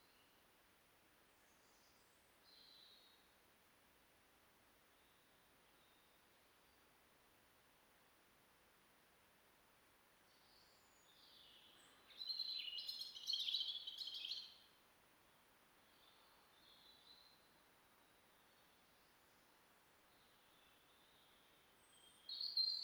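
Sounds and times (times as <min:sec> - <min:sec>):
European robin singing, Erithacus rubecula: 0:10.6 - 0:14.6, 0:20.5 - 0:22.8.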